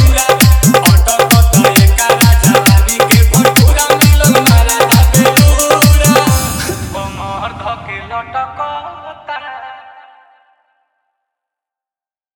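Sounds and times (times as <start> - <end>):
Bhojpuri Holi dholak bass mix: 0.0 - 7.4.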